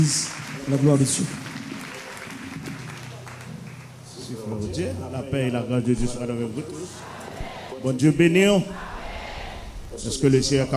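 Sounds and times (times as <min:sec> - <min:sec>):
speech: 0:00.0 - 0:01.5, 0:04.4 - 0:07.2, 0:07.8 - 0:08.9, 0:10.0 - 0:10.7
audience applauding: 0:00.0 - 0:04.1.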